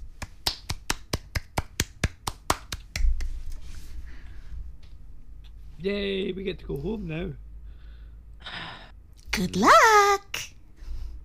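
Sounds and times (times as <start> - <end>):
person clapping: 0.0 - 3.5
speech: 5.8 - 7.4, 9.4 - 10.2.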